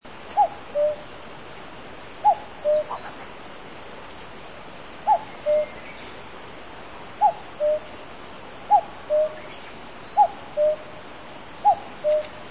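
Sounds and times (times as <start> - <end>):
faint steady hiss: 0.0 - 12.4
common cuckoo calling cu-coo: 0.2 - 1.1, 2.2 - 3.2, 5.0 - 6.0, 7.2 - 7.9, 8.7 - 11.0, 11.6 - 12.4.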